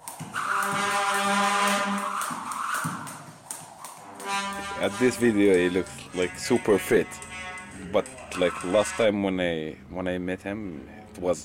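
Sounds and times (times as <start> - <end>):
jump rope slapping ground while skipping: 0.0 - 8.9
speech: 4.8 - 11.4.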